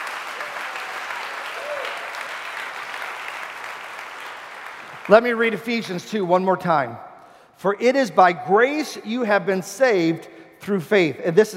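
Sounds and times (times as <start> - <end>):
audience hand clap of praise: 0.0 - 5.8
speech: 5.1 - 11.5.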